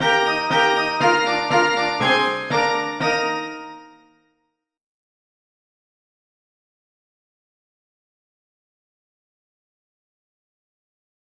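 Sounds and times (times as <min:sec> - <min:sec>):
game over jingle: 0:00.0 - 0:04.0.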